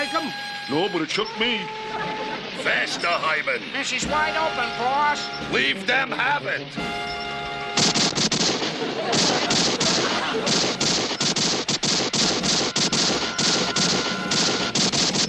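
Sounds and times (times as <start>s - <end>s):
speech: 0.7s - 7.2s
laughter: 1.4s - 6.7s, 8.6s - 11.4s
gunfire shots at a speeding car: 7.8s - 15.2s.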